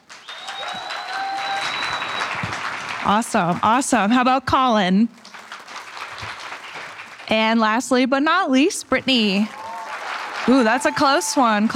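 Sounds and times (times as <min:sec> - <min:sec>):
audience applause: 0:00.0 - 0:03.7, 0:05.2 - 0:07.4, 0:09.2 - 0:11.7
thin high whistle-like tones: 0:00.2 - 0:02.5
speech: 0:03.0 - 0:05.2, 0:07.3 - 0:09.6, 0:10.5 - 0:11.7.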